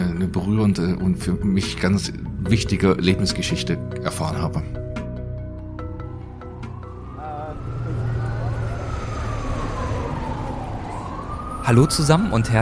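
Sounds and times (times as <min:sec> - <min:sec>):
speech: 0:00.2 - 0:04.8, 0:11.7 - 0:12.5
siren rising and falling in pitch: 0:05.5 - 0:12.5
steady traffic in a busy city square: 0:05.8 - 0:12.5.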